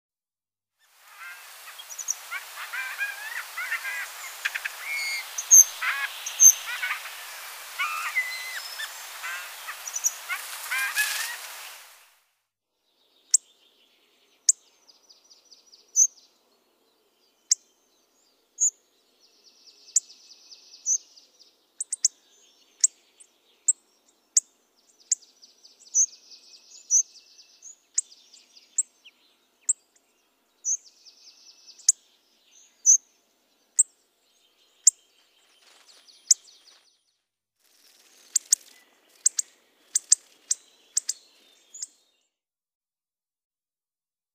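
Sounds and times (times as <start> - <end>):
hawfinch calling: 1.0 - 12.1.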